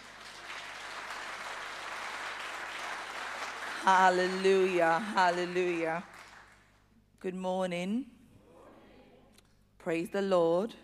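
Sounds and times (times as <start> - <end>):
crowd clapping: 0.0 - 6.9
speech: 3.8 - 6.3, 7.2 - 8.2, 9.8 - 10.8.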